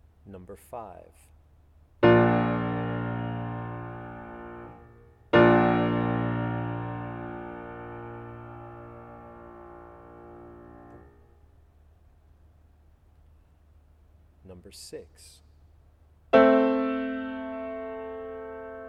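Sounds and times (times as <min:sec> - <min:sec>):
chords: 0:02.0 - 0:11.2, 0:16.4 - 0:18.8.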